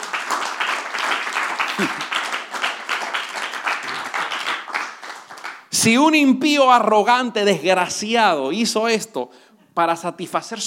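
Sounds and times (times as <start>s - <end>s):
audience applauding: 0.0s - 5.7s
speech: 1.8s - 2.1s, 5.8s - 10.6s.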